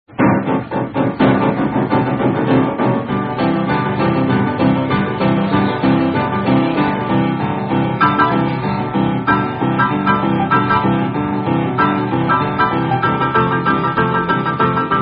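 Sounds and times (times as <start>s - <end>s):
instrumental rock song: 0.1s - 15.0s.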